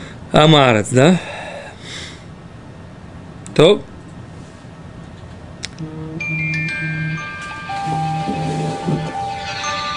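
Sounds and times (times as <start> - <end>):
speech: 0.3 - 1.4, 3.6 - 3.9
timer going off: 5.9 - 9.9.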